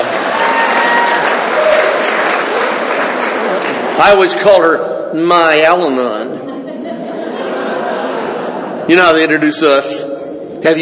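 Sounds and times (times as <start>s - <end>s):
audience applause: 0.0s - 4.4s
speech: 4.0s - 6.5s, 8.9s - 10.8s
laughter: 6.2s - 9.4s.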